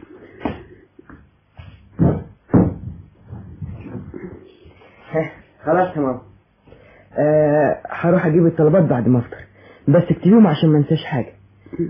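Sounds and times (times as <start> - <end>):
wooden thumps and knocks from climbing onto a chair: 0.4 - 4.2
speech: 5.2 - 6.3, 7.2 - 11.8.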